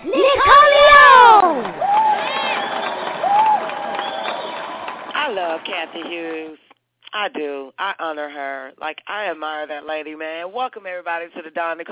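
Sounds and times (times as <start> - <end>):
audience applauding and cheering for a show host: 0.0 - 6.5
speech: 5.7 - 11.9.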